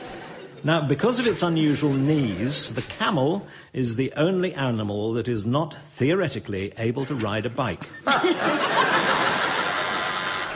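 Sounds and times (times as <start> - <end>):
laughter: 0.0 - 0.6, 7.0 - 10.5
speech: 0.6 - 9.0
quiz show buzzer: 8.8 - 10.5.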